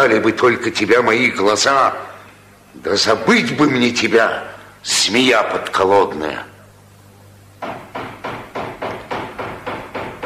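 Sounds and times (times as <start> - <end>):
speech: 0.0 - 2.1, 2.8 - 6.5
knocking on a door: 7.6 - 10.2.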